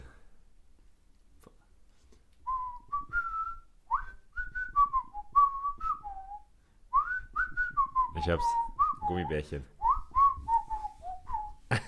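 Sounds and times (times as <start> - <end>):
person whistling a bouncy cartoon theme melody: 2.5 - 11.6
speech: 8.2 - 9.8.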